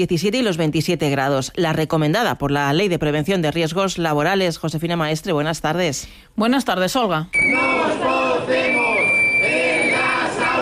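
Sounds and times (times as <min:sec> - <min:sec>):
speech: 0:00.0 - 0:08.8
protesters chanting at a street rally in front of the Asamblea de Madrid: 0:07.4 - 0:10.5.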